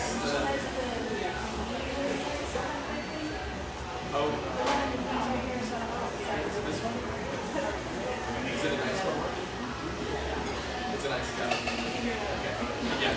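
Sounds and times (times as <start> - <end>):
many voices murmuring in a rustic bayside coffeeshop: 0.0 - 13.1
dishes and cutlery clinking: 10.4 - 12.2.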